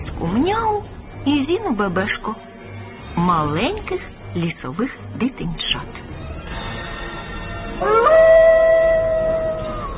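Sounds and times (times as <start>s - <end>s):
speech: 0.2s - 2.5s, 3.2s - 6.0s, 7.8s - 8.0s
jackal howling: 7.8s - 9.9s.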